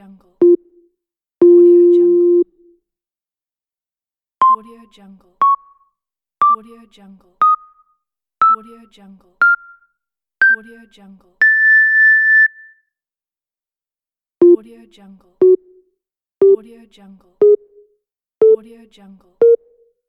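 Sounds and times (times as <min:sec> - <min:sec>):
beeps: 0:00.4 - 0:00.8, 0:01.4 - 0:02.5, 0:04.4 - 0:04.6, 0:05.4 - 0:05.8, 0:07.4 - 0:07.8, 0:08.4 - 0:08.7, 0:09.4 - 0:09.8, 0:10.4 - 0:10.6, 0:11.4 - 0:12.8, 0:15.4 - 0:15.8, 0:17.4 - 0:18.6, 0:19.4 - 0:19.9.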